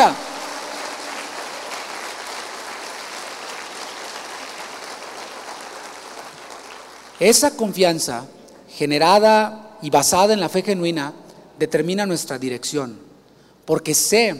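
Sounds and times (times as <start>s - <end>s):
speech: 0.0s - 0.2s, 7.2s - 14.3s
audience applause: 0.0s - 7.3s.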